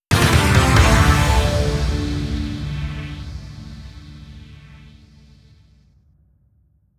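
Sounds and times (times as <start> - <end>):
breaking news logo synth jingle: 0.1 - 4.9.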